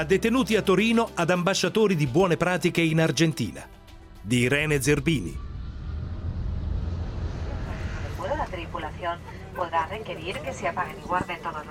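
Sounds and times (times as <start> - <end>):
speech: 0.0 - 5.5, 8.8 - 11.6
airplane cabin in flight to Buenos Aires Argentina: 4.7 - 11.6.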